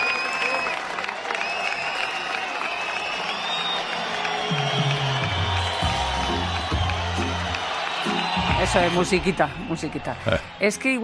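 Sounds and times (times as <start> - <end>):
concert audience applause: 0.0 - 11.0
high whistles: 1.4 - 9.0
speech: 8.7 - 11.0.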